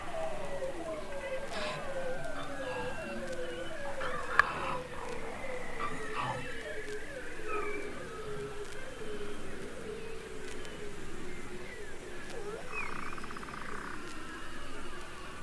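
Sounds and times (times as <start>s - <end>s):
beluga whale whistles and trills: 0.0s - 15.4s.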